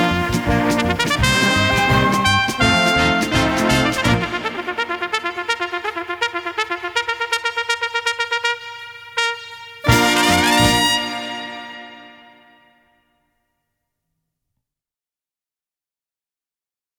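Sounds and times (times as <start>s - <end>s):
trumpets: 0.0s - 12.9s.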